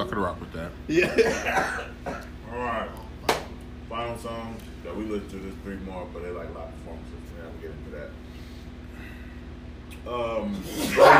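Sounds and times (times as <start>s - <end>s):
speech: 0.0s - 3.0s, 3.9s - 8.3s, 10.0s - 11.1s
faint steady hum: 0.0s - 11.1s
sneeze: 10.6s - 11.1s.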